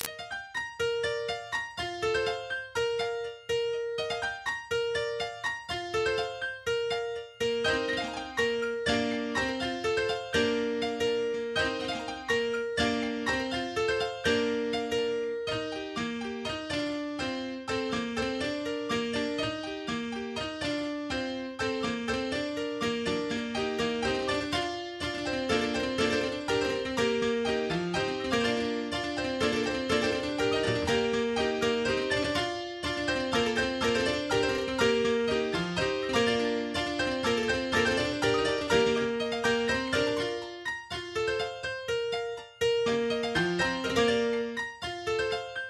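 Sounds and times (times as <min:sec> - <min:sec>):
piano: 0:00.0 - 0:45.6.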